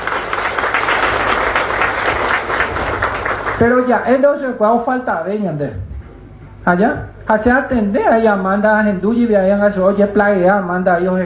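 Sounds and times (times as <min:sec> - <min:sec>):
crowd applauding: 0:00.0 - 0:04.1
speech: 0:03.6 - 0:05.9, 0:06.6 - 0:11.2.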